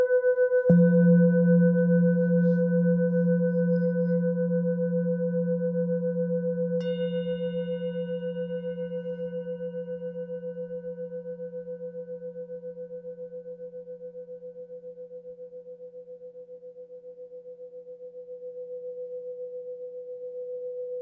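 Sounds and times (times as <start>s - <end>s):
muted seven-metal Tibetan singing bowl struck on note F: 0.0s - 13.4s.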